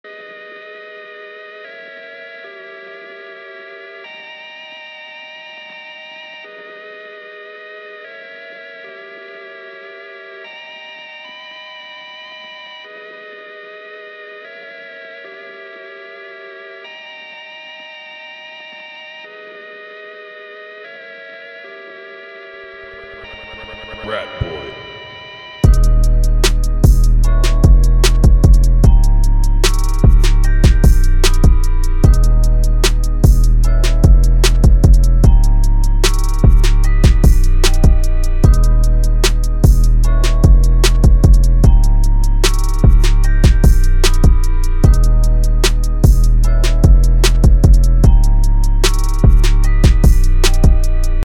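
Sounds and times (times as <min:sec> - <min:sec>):
chords: 0:20.9 - 0:51.2.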